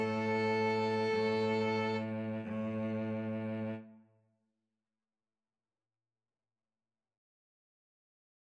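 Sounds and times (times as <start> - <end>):
string trio playing: 0.0 - 3.9.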